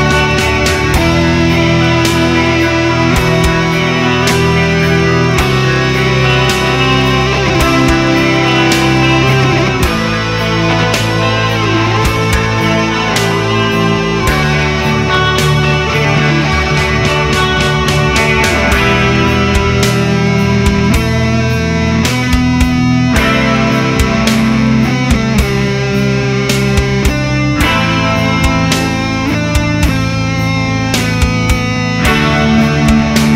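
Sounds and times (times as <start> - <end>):
guitar: 0.0 - 33.3.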